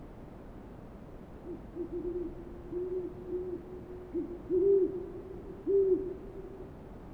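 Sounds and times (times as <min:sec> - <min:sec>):
owl hooting: 0:01.4 - 0:06.6.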